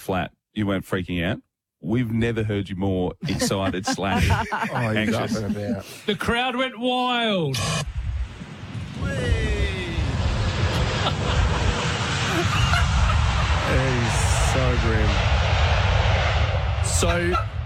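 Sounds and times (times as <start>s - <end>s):
speech: 0.1s - 8.0s, 14.6s - 15.5s, 17.0s - 17.5s
laughter: 3.2s - 6.3s, 10.7s - 14.6s
airplane landing, engines roaring: 8.3s - 17.6s.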